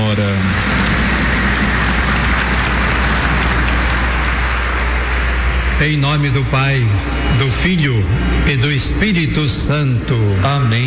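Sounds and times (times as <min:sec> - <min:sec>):
audience applause: 0:00.0 - 0:05.7
speech: 0:05.8 - 0:10.8.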